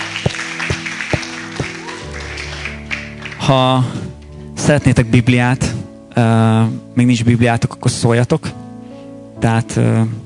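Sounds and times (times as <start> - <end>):
audience clapping: 0.0 - 4.0
speech: 3.5 - 4.0, 4.6 - 8.6, 9.4 - 10.2.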